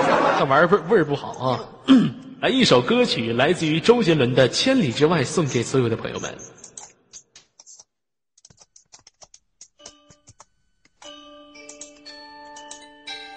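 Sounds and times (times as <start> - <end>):
laughter: 0.0 - 1.6
speech: 0.4 - 6.6
typing on a computer keyboard: 6.6 - 12.9.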